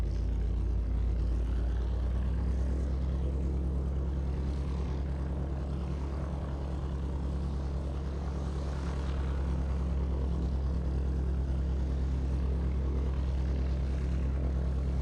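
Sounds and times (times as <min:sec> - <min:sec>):
distant Hawker Sea Fury fighter-bomber engine starting: 0:00.0 - 0:15.0.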